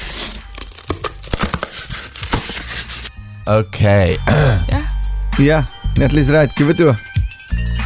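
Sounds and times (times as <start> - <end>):
tin foil crumpled: 0.0 - 3.1
speech: 3.5 - 4.8, 5.4 - 7.1.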